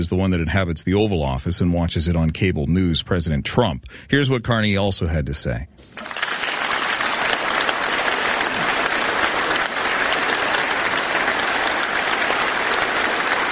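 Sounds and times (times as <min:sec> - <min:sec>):
speech: 0:00.0 - 0:06.2
applause from a large audience: 0:05.9 - 0:13.5.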